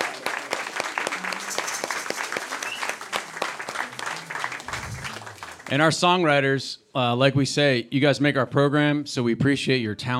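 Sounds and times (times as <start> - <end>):
audience applause: 0.0 - 5.9
speech: 5.7 - 10.1.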